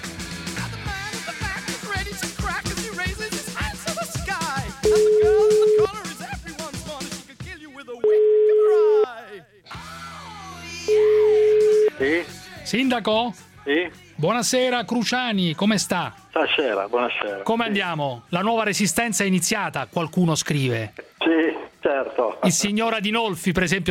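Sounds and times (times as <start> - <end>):
busy music: 0.0 - 23.8
phone line ringback tones on an outgoing call: 4.8 - 5.9, 8.0 - 9.1, 10.9 - 12.0
speech: 12.7 - 23.8.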